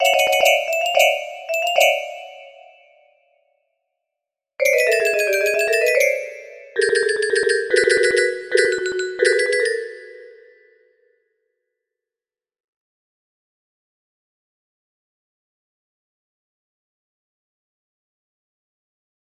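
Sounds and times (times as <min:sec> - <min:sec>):
music box melody: 0:00.0 - 0:02.9, 0:04.6 - 0:10.5.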